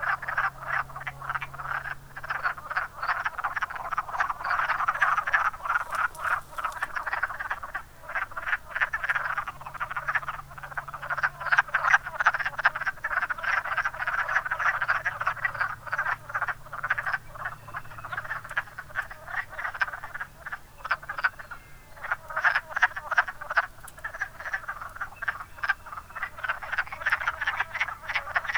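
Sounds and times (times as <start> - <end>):
wood frogs clucking croaks: 0.0 - 28.5.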